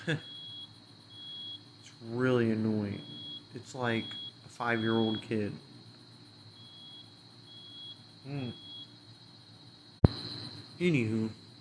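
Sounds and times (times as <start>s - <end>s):
speech: 0.0s - 0.3s, 2.0s - 5.7s, 8.2s - 8.6s, 10.8s - 11.4s
neighbor's smoke alarm beeping: 0.0s - 5.6s, 6.2s - 9.2s.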